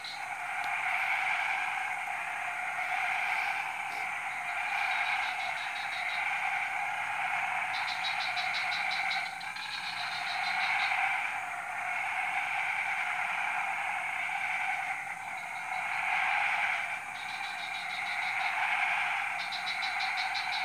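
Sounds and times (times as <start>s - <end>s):
frog chorus: 0.0s - 20.6s.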